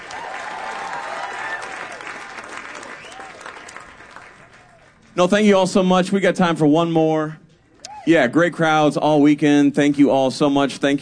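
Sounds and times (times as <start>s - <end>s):
audience applause: 0.0s - 5.2s
speech: 5.2s - 7.4s, 8.0s - 10.9s.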